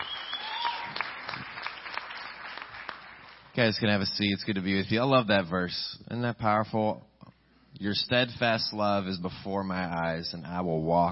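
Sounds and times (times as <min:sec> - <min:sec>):
audience applause: 0:00.0 - 0:03.5
speech: 0:03.6 - 0:07.1, 0:07.8 - 0:11.1.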